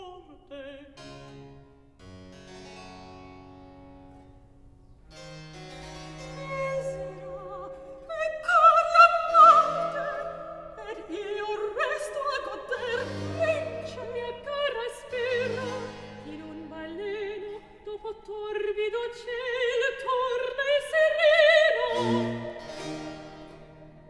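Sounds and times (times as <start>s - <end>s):
recitative singing: 6.3s - 24.0s.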